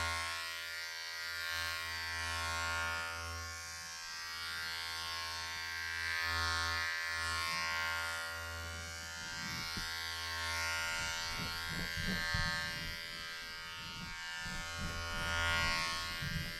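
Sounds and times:
electric clippers buzzing during a salon haircut: 0.0 - 16.5.

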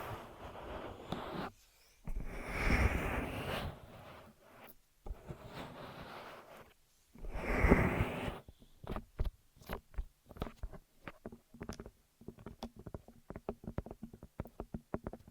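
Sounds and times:
ear massage rubbing and brushing: 0.0 - 8.5
ear cleaning taps and scratchy clicks: 8.8 - 15.2.

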